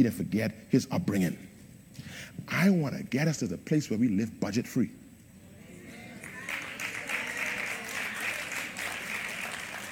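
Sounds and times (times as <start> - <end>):
speech: 0.0 - 5.0
audience clapping: 6.1 - 9.9.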